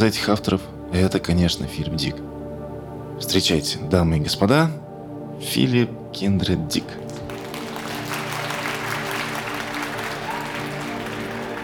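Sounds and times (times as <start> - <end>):
speech: 0.0 - 2.4, 3.2 - 4.8, 5.4 - 7.0
audience applause: 7.1 - 11.6.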